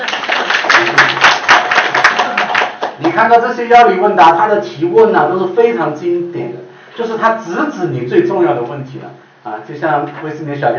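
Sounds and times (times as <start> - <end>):
crowd applauding: 0.0 - 3.2
speech: 3.2 - 10.7.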